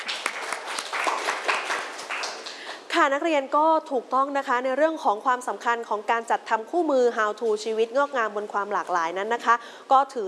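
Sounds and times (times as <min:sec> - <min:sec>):
students in a classroom applauding a classmate: 0:00.0 - 0:02.7
speech: 0:03.0 - 0:10.2.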